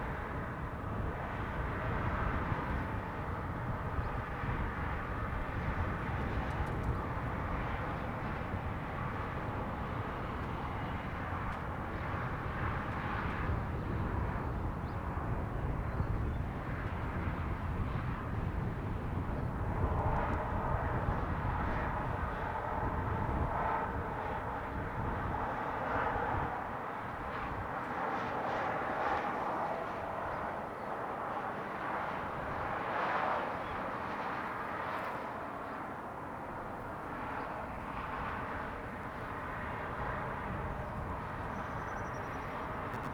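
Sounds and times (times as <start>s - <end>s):
strong wind: 0.0s - 35.0s, 36.0s - 43.1s
airplane passing: 0.0s - 43.1s
road traffic: 38.6s - 43.1s.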